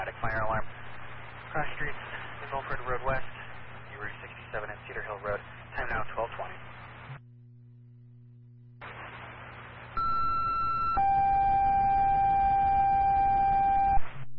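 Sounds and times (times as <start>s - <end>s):
radio static: 0.0s - 7.2s, 8.8s - 10.3s
speech: 1.5s - 3.4s, 4.0s - 7.2s
fire dispatch cancel tone: 10.0s - 14.0s.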